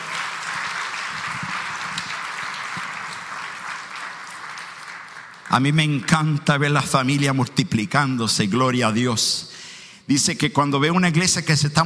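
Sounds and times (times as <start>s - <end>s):
audience applause for a family: 0.0s - 6.2s
speech: 5.5s - 9.5s, 10.1s - 11.8s.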